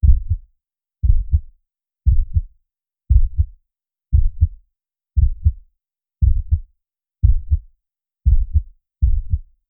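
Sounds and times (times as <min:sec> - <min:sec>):
fast heartbeat: 0:00.0 - 0:01.5, 0:02.1 - 0:02.5, 0:03.1 - 0:04.6, 0:05.2 - 0:05.6, 0:06.2 - 0:09.5.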